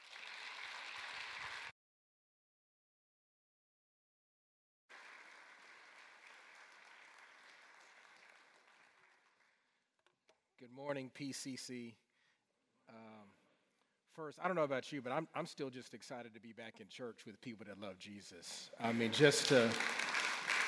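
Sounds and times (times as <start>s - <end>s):
crowd of people clapping: 0.0s - 1.7s, 4.9s - 9.8s, 18.8s - 20.6s
speech: 10.6s - 12.0s, 14.2s - 20.0s.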